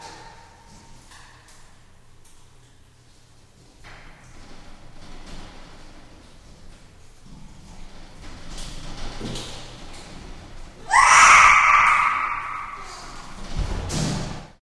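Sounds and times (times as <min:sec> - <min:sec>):
chimpanzee screaming while climbing a cage in a large space: 0:10.8 - 0:13.4.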